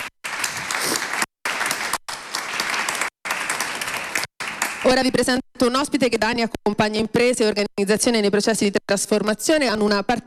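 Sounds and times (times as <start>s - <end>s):
big round of audience applause: 0.0s - 4.9s
speech: 4.8s - 10.2s.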